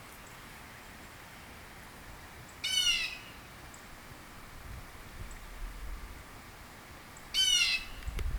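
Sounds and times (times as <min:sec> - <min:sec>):
bird giving harsh nasal squawks in Northern Illinois: 0:02.6 - 0:03.3, 0:07.4 - 0:08.0.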